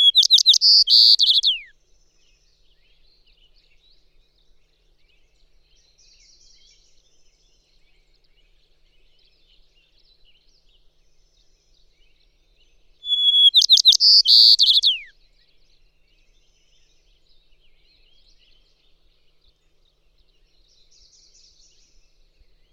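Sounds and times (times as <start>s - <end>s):
White-crowned Sparrow calling: 0.0s - 1.7s, 13.0s - 15.1s.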